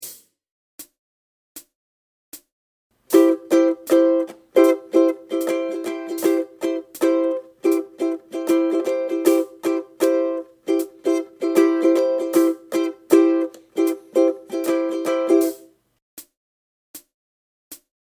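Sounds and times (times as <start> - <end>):
ukulele strumming: 3.1 - 15.7.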